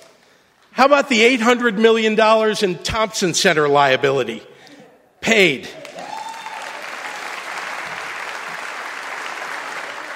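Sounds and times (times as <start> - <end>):
speech: 0.8 - 4.5, 5.2 - 5.8
people clapping: 5.8 - 10.1.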